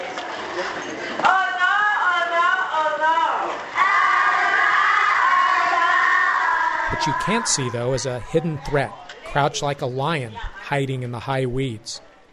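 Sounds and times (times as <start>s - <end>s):
speech: 0.6s - 1.4s, 7.0s - 12.1s
children shouting at a primary school: 1.2s - 9.2s
laughter: 6.9s - 12.0s.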